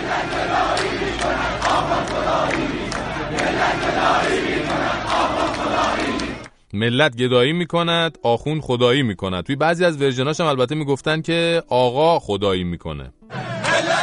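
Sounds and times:
large protest crowd chanting slogans in unison: 0.0s - 6.5s, 13.3s - 14.0s
speech: 6.8s - 13.6s.

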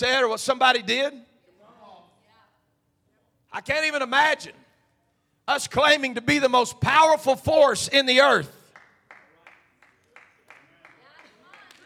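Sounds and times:
speech: 0.0s - 1.3s, 3.5s - 4.6s, 5.5s - 8.6s
faint clapping from two people: 8.7s - 11.8s.

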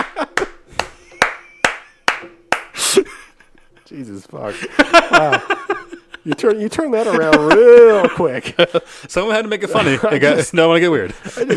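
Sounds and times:
laughter: 0.0s - 2.1s, 2.7s - 11.5s
slow sharp hand claps: 0.0s - 2.8s
speech: 4.0s - 11.5s.

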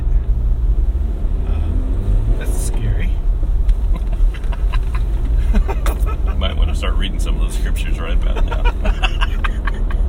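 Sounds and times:
car being driven rumbling: 0.0s - 10.0s
laughter: 3.8s - 6.6s, 8.2s - 10.0s.

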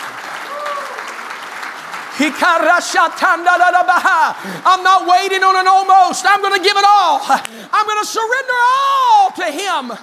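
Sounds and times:
crowd audience applauding: 0.0s - 4.3s
speech: 2.2s - 10.0s.

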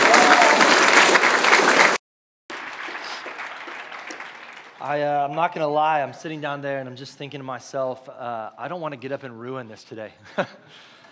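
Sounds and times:
scattered cheering: 0.0s - 4.0s
crowd applause: 0.0s - 5.4s
speech: 4.8s - 11.0s.

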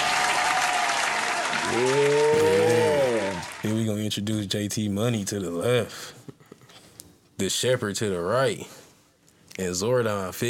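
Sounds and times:
cheering whoops: 0.0s - 3.6s
applause: 0.0s - 3.9s
speech: 1.7s - 2.2s, 4.1s - 6.2s, 7.4s - 8.8s, 9.6s - 10.4s.

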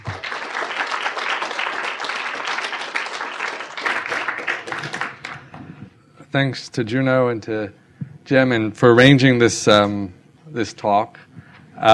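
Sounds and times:
audience applause welcoming a speaker to a university talk: 0.0s - 5.4s
speech: 6.3s - 11.9s.

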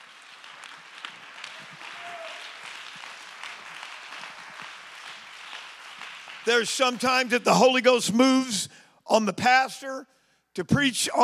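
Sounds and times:
audience clapping hands: 0.0s - 8.0s
speech: 6.5s - 11.2s.

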